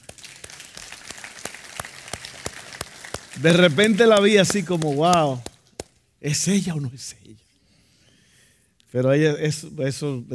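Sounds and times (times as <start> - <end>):
applause: 0.0 - 5.9
speech: 3.4 - 5.5, 6.2 - 7.4, 8.9 - 10.3.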